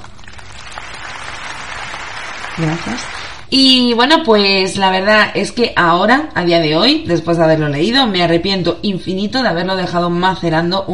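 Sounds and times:
applause: 0:00.0 - 0:03.5
speech: 0:02.6 - 0:10.9.

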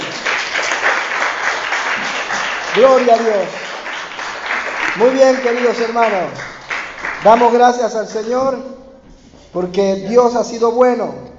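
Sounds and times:
audience applause: 0:00.0 - 0:07.8
speech: 0:02.8 - 0:03.6, 0:05.0 - 0:06.5, 0:07.2 - 0:08.8, 0:09.5 - 0:11.2.

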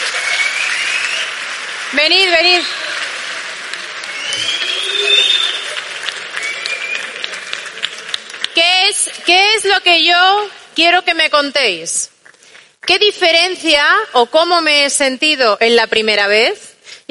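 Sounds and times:
audience applause: 0:00.0 - 0:09.8
speech: 0:01.9 - 0:02.8, 0:09.0 - 0:12.1, 0:12.9 - 0:17.1.

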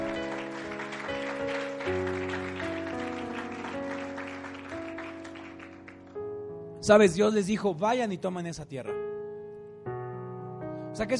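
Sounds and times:
audience applauding loudly: 0:00.0 - 0:06.2
speech: 0:06.9 - 0:09.0, 0:11.0 - 0:11.1.

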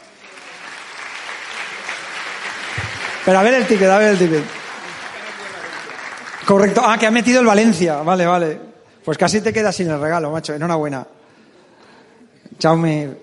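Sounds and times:
audience applause: 0:00.0 - 0:07.4
speech: 0:03.2 - 0:04.6, 0:06.5 - 0:11.2, 0:12.6 - 0:13.2.

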